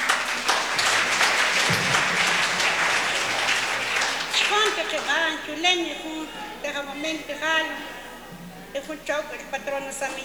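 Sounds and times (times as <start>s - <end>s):
crowd applauding: 0.0s - 5.3s
speech: 5.3s - 8.0s, 8.7s - 10.2s.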